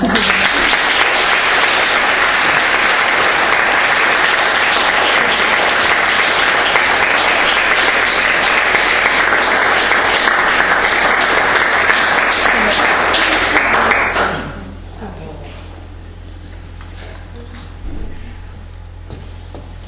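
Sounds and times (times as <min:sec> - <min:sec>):
audience applause: 0:00.0 - 0:14.7.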